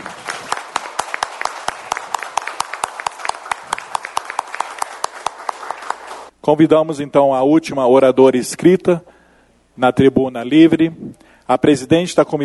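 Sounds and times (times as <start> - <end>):
applause: 0.0 - 6.3
speech: 6.5 - 9.2, 9.8 - 12.4.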